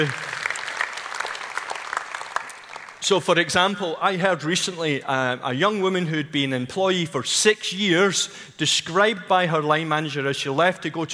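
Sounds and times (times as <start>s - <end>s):
speech: 0.0s - 0.3s, 3.0s - 11.1s
audience applause: 0.0s - 3.0s.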